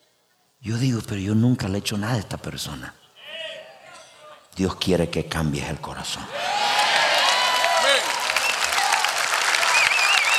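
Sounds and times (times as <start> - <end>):
speech: 0.6 - 3.0, 4.6 - 6.8
audience applause: 6.3 - 10.3
high cheers: 6.3 - 10.3.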